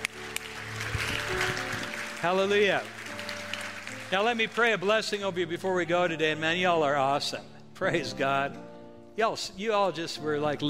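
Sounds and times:
audience applause: 0.0 - 5.4
speech: 2.2 - 3.0, 4.1 - 10.6.

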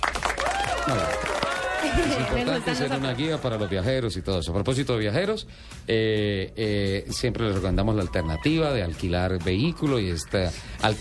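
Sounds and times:
applause: 0.0 - 4.0
speech: 0.9 - 1.3, 2.0 - 10.9.

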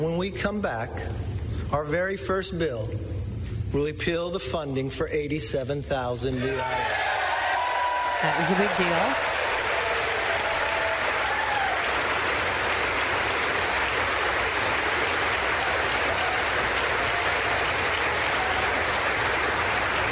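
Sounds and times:
speech: 0.0 - 3.1, 3.7 - 7.2, 8.2 - 9.4
audience applause: 6.5 - 20.0.

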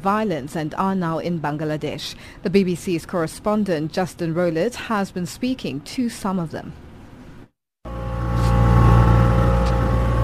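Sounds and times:
speech: 0.0 - 6.8
motor launch engine droning on a river: 7.9 - 10.2.

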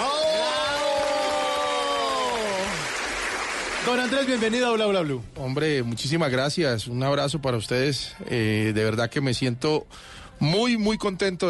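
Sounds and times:
studio audience applause: 0.0 - 4.8
speech: 3.9 - 11.4.

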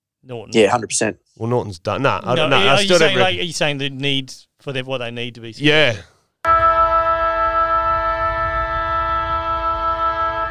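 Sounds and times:
speech: 0.2 - 6.1
siren: 6.5 - 10.4.

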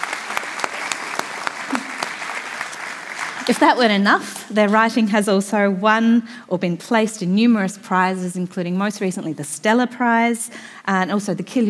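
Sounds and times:
audience applause: 0.0 - 3.7
speech: 3.5 - 11.6.

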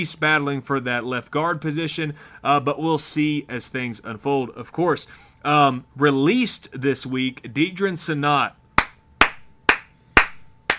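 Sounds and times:
speech: 0.0 - 8.6
sharp loud claps: 8.8 - 10.7.

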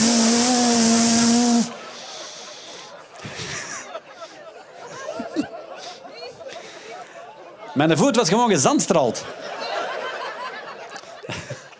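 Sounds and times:
man imitating the hiss of a wide-spray mist sprinkler: 0.0 - 2.8
laughter: 1.5 - 7.8, 9.0 - 11.7
speech: 7.8 - 9.5.

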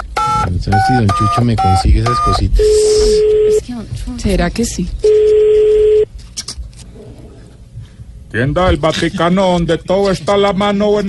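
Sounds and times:
telephone keypad tones and clicks: 0.0 - 3.6
speech: 0.6 - 5.3, 8.4 - 11.0.

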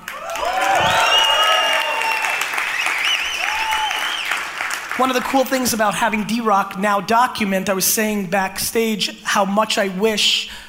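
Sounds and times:
cheers and whoops: 0.0 - 4.4
crowd applause: 0.0 - 5.2
speech: 5.0 - 10.6.

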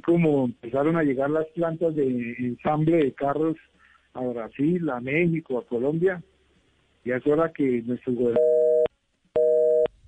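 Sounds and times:
speech: 0.0 - 6.3, 7.0 - 8.6
telephone busy tone after a dropped call: 8.4 - 9.9.

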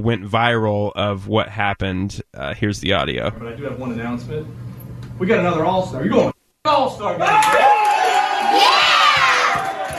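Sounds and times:
speech: 0.0 - 7.8
baseball team men cheering and shouting: 7.1 - 9.9.

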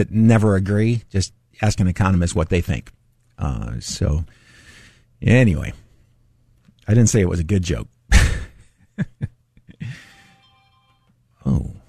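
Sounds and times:
speech: 0.0 - 4.4, 5.2 - 5.8, 6.9 - 7.9, 9.0 - 10.0
phone left in the room making noise: 10.0 - 11.1.

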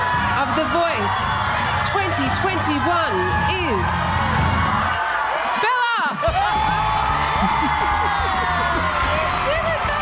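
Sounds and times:
large crowd cheering wildly with screams and whoops: 0.0 - 10.0
laughter: 7.1 - 10.0.

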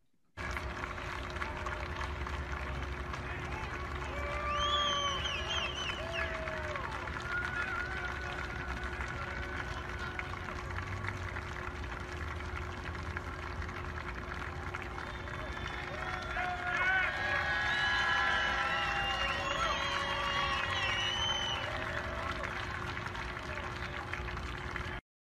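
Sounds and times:
crowd cheering at football training camp: 0.4 - 25.0
high whoops or whistles: 4.1 - 6.8, 14.9 - 22.2.

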